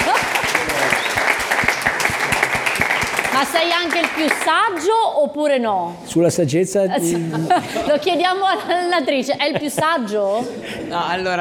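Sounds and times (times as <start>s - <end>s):
laughter: 0.0s - 2.8s, 7.0s - 10.4s
crowd clapping: 0.0s - 5.0s
speech: 3.4s - 11.3s.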